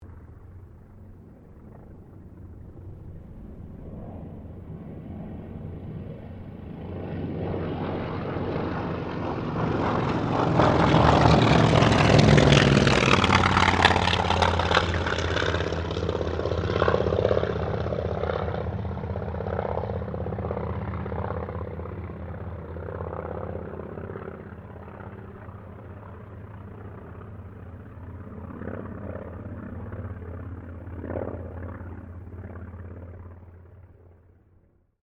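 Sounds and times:
aircraft squadron passing: 0.0s - 34.8s.

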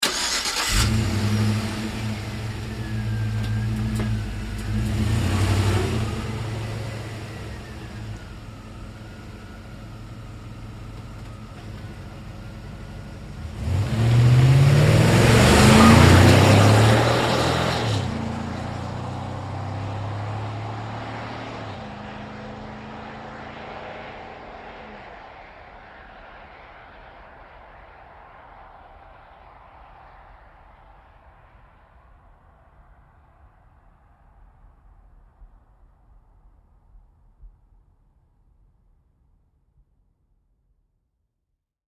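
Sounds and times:
GMC Savana truck starting and pulling away fast: 0.0s - 25.0s.

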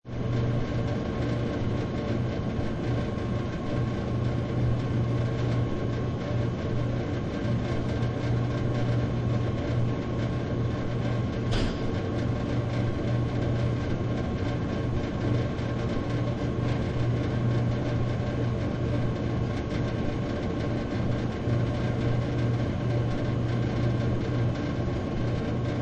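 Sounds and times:
drinks vending machine: 0.4s - 25.7s.

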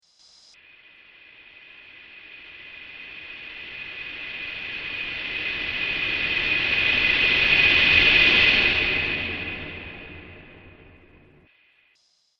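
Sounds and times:
haunting wave transition: 1.8s - 11.5s.

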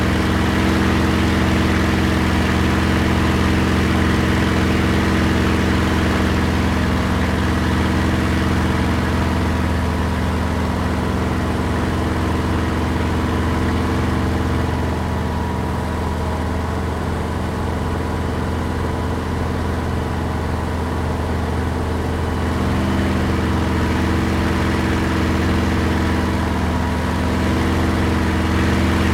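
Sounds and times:
Supermarine Spitfire Mk XVI taking off heard from the interior: 0.0s - 29.1s.

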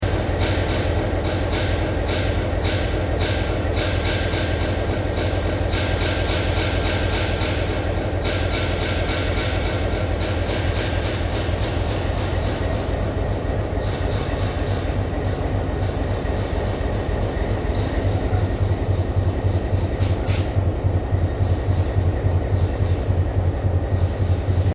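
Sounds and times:
T Class diesel locomotive idling: 0.0s - 24.7s.

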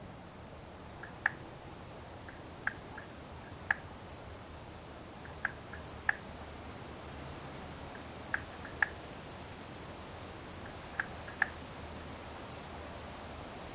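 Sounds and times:
gentle wind: 0.0s - 13.7s
frogs croaking: 0.8s - 4.0s, 5.0s - 6.4s, 7.9s - 9.1s, 10.6s - 11.6s.

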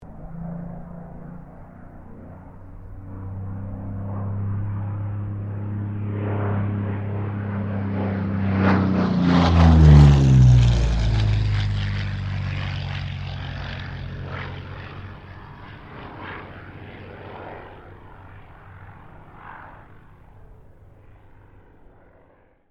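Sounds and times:
P-40 Kittyhawk aircraft passing: 0.0s - 22.6s.

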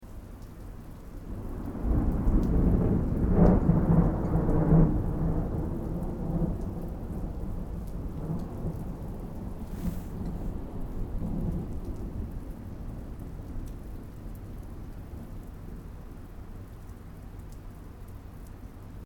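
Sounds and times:
distant thunder: 1.3s - 13.3s.

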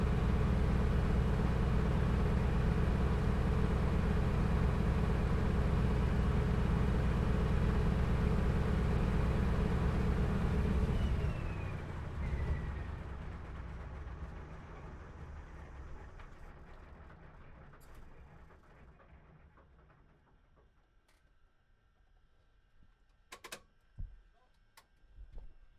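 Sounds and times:
CA-13 Boomerang aircraft engine shutting down heard from the interior: 0.0s - 20.8s.

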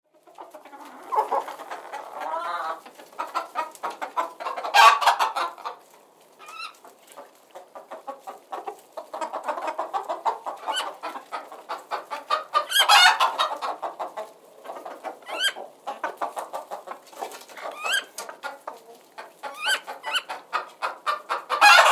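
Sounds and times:
hens clucking: 0.1s - 21.9s.

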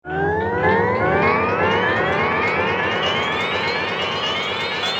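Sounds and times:
teleportation device sound effect: 0.1s - 4.8s.

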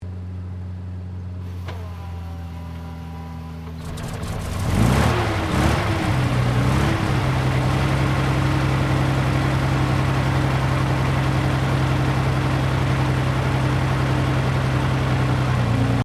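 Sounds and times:
British Centurion main battle tank primary engine ignition: 1.4s - 16.0s.

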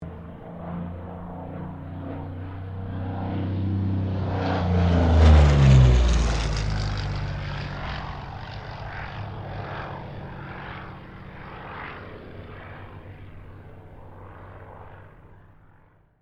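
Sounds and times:
P-40 Kittyhawk aircraft passing: 0.0s - 16.1s.

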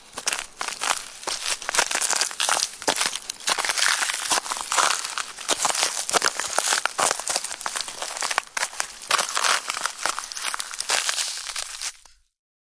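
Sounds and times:
footsteps crunching on ice: 0.0s - 12.2s.

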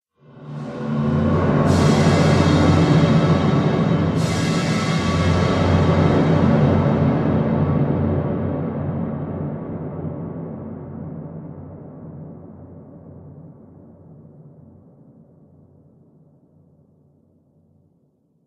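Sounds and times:
cinematic drum stinger: 0.6s - 8.7s.

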